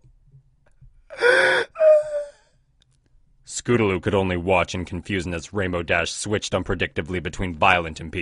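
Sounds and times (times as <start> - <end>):
person gasping through sobs: 1.1 - 2.6
speech: 3.7 - 8.2.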